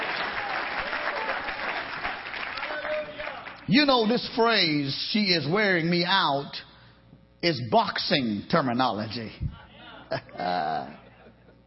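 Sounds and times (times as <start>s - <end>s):
audience clapping hands: 0.0s - 3.7s
speech: 3.7s - 6.7s, 7.4s - 9.5s, 10.1s - 11.0s.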